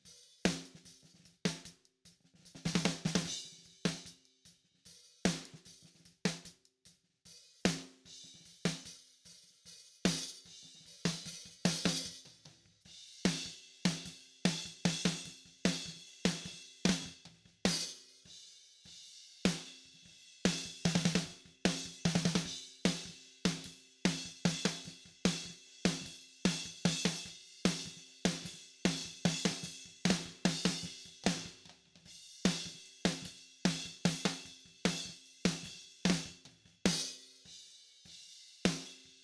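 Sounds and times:
snare drum: 0:02.5 - 0:04.2, 0:05.3 - 0:06.6, 0:07.6 - 0:09.0, 0:10.1 - 0:12.5, 0:13.2 - 0:18.1, 0:19.5 - 0:19.8, 0:20.5 - 0:31.8, 0:32.5 - 0:37.4.

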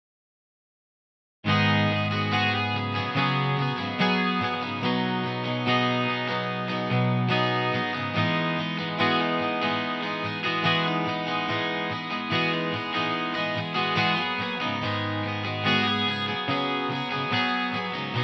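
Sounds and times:
bass guitar: 0:01.5 - 0:18.2.

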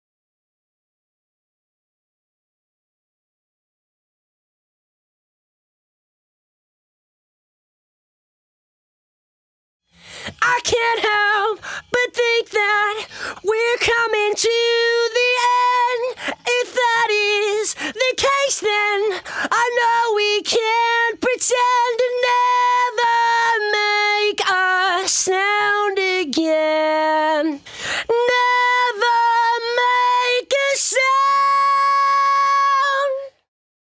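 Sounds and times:
lead vocals: 0:10.0 - 0:33.4.

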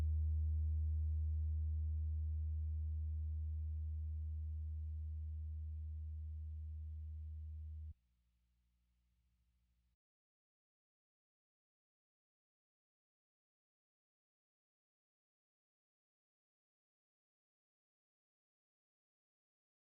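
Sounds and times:
bass: 0:00.0 - 0:08.0.

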